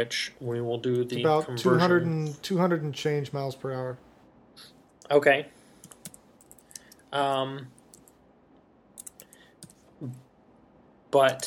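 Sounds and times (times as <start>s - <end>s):
speech: 0.0s - 5.6s, 7.1s - 7.8s, 10.0s - 10.2s, 11.1s - 11.4s
keyboard typing: 5.8s - 8.2s, 9.0s - 10.2s.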